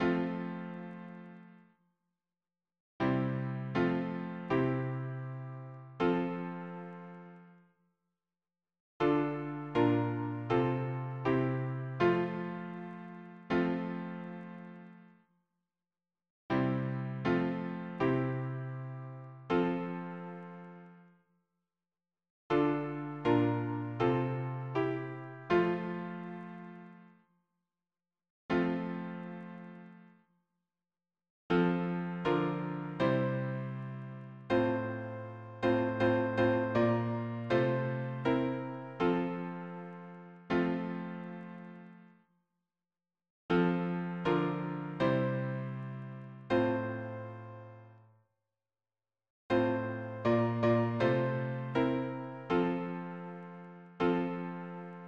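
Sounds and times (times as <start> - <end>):
piano harmony: 0.0 - 1.5, 3.0 - 7.6, 9.0 - 15.0, 16.5 - 21.0, 22.5 - 27.0, 31.5 - 42.0, 43.5 - 47.9, 49.5 - 55.0.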